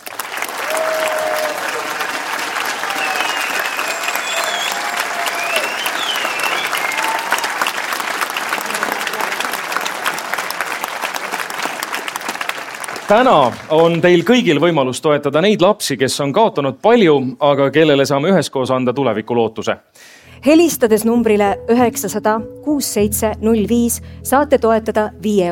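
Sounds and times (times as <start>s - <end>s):
audience applause at a charity concert: 0.0s - 14.6s
speech: 13.1s - 25.4s.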